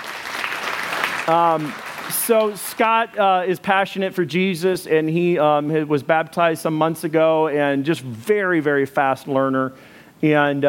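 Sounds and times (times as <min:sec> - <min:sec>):
audience applause: 0:00.0 - 0:02.8
speech: 0:01.3 - 0:10.6.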